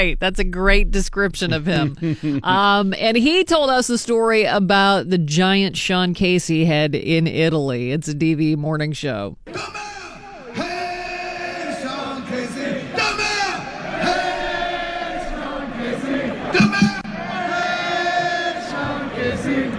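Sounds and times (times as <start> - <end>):
speech: 0.0 - 9.8
laughter: 1.4 - 2.8
concert crowd chanting a name: 9.5 - 19.7.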